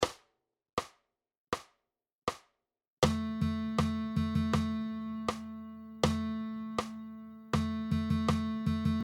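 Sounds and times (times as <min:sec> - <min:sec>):
guitar playing rhythm dictation exercises: 0:03.0 - 0:09.0.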